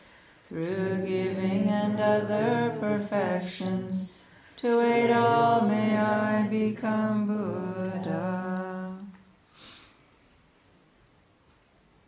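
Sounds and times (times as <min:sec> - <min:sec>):
chant: 0:00.5 - 0:09.1.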